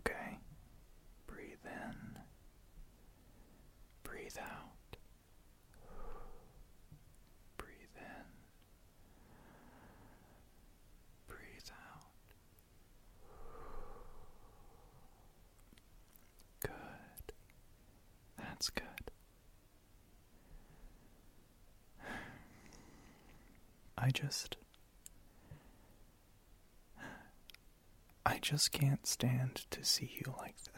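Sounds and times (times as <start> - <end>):
soft breathy voice: 0.0 - 0.5, 1.3 - 2.3, 3.1 - 5.0, 5.8 - 6.7, 7.6 - 10.6, 11.3 - 12.2, 13.2 - 15.5, 16.5 - 17.4, 18.4 - 19.2, 22.0 - 24.7, 27.0 - 27.4, 28.3 - 30.7
slow calm breathing: 3.0 - 3.8, 5.7 - 6.8, 8.0 - 10.7, 13.1 - 15.5, 20.3 - 21.4, 22.0 - 23.8, 25.2 - 26.2, 27.0 - 27.4
speech: 24.1 - 24.7, 28.4 - 30.7.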